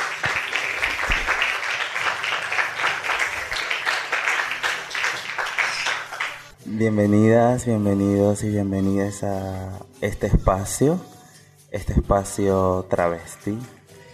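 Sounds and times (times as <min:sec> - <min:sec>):
audience applause: 0:00.0 - 0:06.5
speech: 0:06.7 - 0:11.1, 0:11.7 - 0:13.8.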